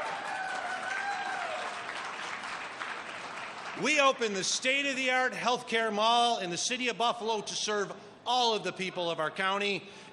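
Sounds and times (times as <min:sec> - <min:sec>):
audience cheering and applause: 0:00.0 - 0:04.0
speech: 0:03.8 - 0:10.1.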